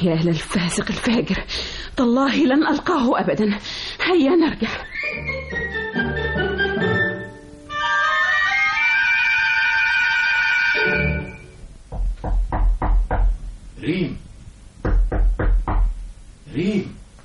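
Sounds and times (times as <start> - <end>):
speech: 0.0 - 5.7, 13.8 - 14.2
sustained orchestral music: 4.9 - 11.6
firm knocks on a house door: 11.9 - 13.5, 14.8 - 16.0.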